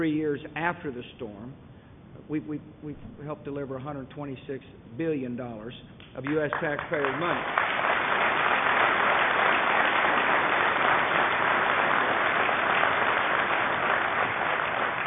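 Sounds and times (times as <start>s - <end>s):
speech: 0.0s - 7.7s
audience applause: 6.3s - 15.0s.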